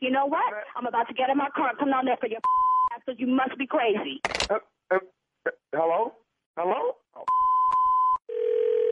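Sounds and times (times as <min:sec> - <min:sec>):
speech: 0:00.1 - 0:05.1, 0:05.7 - 0:07.0
telephone dial tone: 0:07.7 - 0:08.8.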